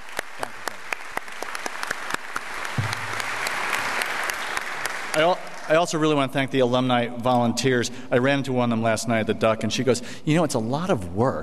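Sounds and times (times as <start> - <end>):
large audience applause: 0.0 - 5.8
speech: 5.2 - 11.4.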